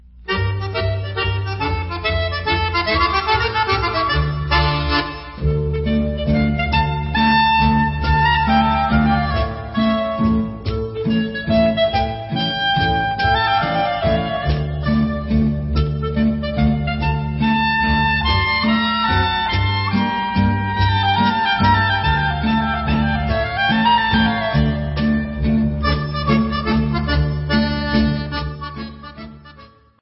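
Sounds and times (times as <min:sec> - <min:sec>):
instrumental Israeli mazurka: 0:00.0 - 0:29.9.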